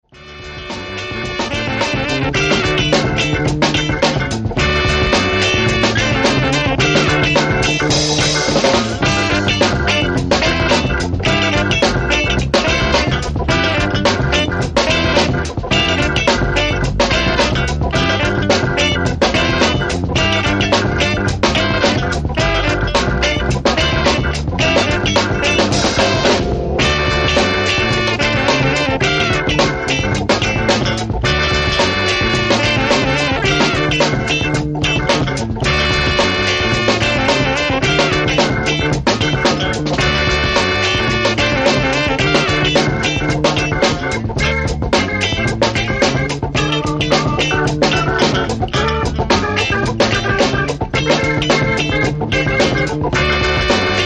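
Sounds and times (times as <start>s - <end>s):
groove music: 0.0s - 54.0s.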